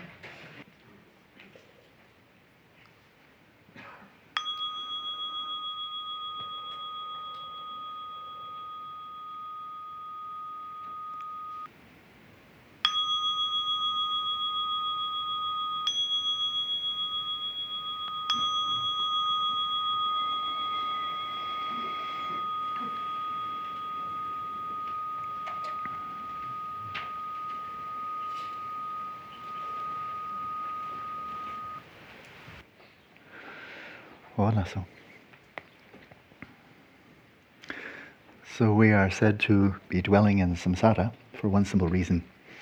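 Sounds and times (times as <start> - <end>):
meditation timer bell chiming: 4.4 - 32.6
speech: 34.4 - 35.0, 38.6 - 42.3.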